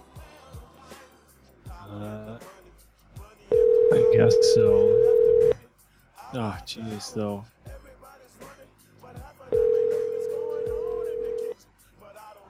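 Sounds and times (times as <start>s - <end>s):
telephone dialing tones: 3.5s - 5.6s, 9.6s - 11.5s
speech: 4.2s - 5.1s, 6.3s - 7.6s.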